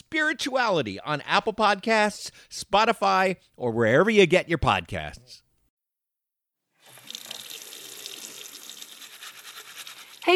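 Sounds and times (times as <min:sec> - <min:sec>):
speech: 0:00.3 - 0:05.4
running water from a tap as hands are washed: 0:06.8 - 0:10.3.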